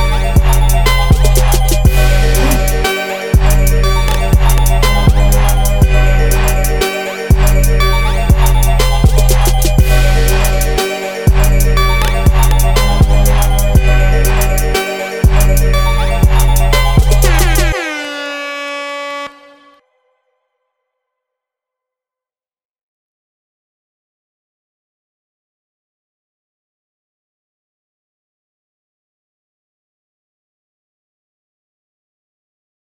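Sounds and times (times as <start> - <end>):
trap beat: 0.0 - 18.7.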